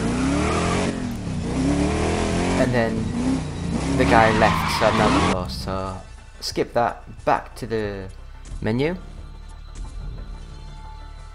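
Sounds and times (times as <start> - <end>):
video game car engine racing around a figure-eight track: 0.0 - 11.3
speech: 2.6 - 3.2, 3.9 - 9.1.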